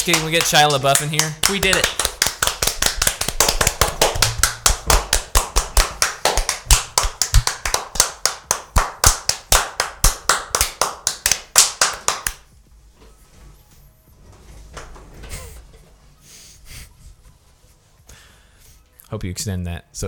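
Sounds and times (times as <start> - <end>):
speech: 0.0 - 2.0, 19.1 - 20.0
hands clapping: 0.0 - 12.5.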